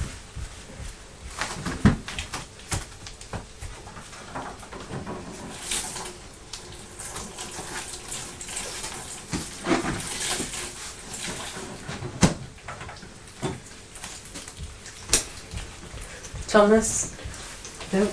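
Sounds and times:
running tap water at a sink while washing a young child's hands: 1.8 - 18.1
speech: 16.5 - 17.1, 17.9 - 18.1.

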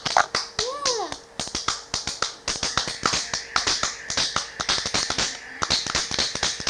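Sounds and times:
hands clapping: 0.0 - 6.6.

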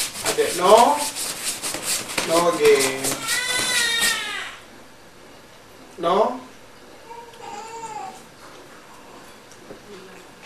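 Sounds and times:
speech: 0.4 - 1.2, 2.3 - 3.2, 6.0 - 6.4
young child crying: 3.1 - 4.7, 7.0 - 8.2.

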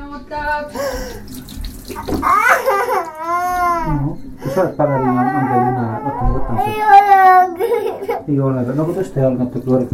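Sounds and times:
speech: 0.3 - 2.7, 3.9 - 9.9
water running while washing a baby: 0.7 - 3.8, 9.2 - 9.9.

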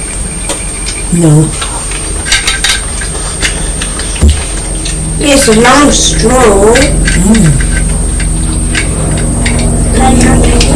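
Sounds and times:
speech: 1.1 - 1.6, 5.2 - 7.7, 10.0 - 10.7
helicopter flying overhead: 2.2 - 10.7.

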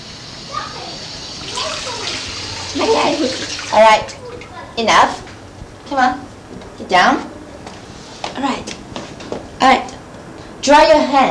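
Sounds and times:
running water as a small child washes her hands: 0.0 - 4.6
child's voice: 0.5 - 4.9
speech: 2.8 - 4.2, 4.8 - 5.2, 5.9 - 6.3, 6.9 - 7.3, 8.4 - 8.8, 9.6 - 9.9, 10.6 - 11.2.

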